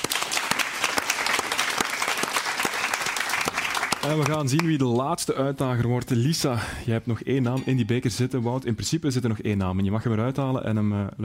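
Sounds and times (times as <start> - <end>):
audience applause: 0.0 - 4.8
speech: 4.0 - 11.2.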